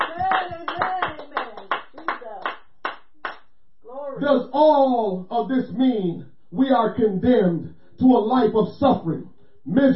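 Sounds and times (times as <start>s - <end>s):
congregation clapping hands in praise: 0.0s - 3.4s
speech: 4.2s - 9.9s.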